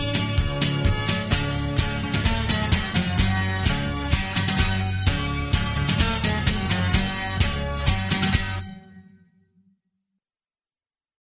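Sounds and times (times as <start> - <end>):
hoedown square dance music: 0.0 - 8.7.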